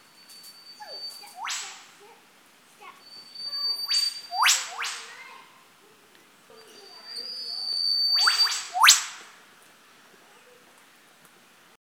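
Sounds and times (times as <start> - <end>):
whipbird calls: 0.8 - 2.1, 3.2 - 5.5, 6.6 - 9.4.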